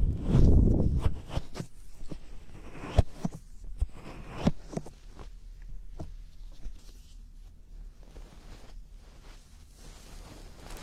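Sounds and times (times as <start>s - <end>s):
ear cleaning: 0.1s - 4.9s.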